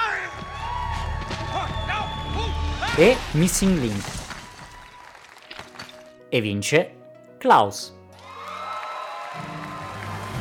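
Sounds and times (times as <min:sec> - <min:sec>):
audience applause: 0:00.0 - 0:05.8, 0:08.1 - 0:10.3
speech: 0:03.0 - 0:04.2, 0:06.3 - 0:08.0.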